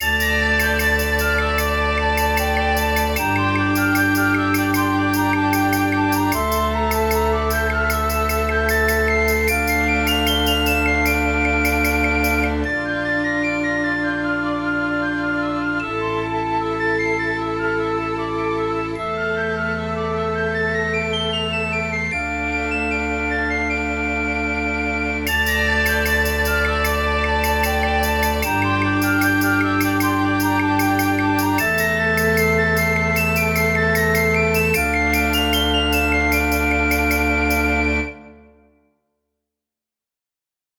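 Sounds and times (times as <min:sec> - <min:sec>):
medieval tune: 0:00.0 - 0:38.7.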